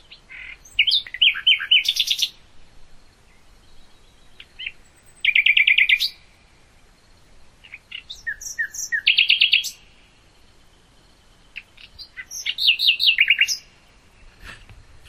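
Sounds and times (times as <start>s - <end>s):
common nightingale singing: 0.0s - 15.0s.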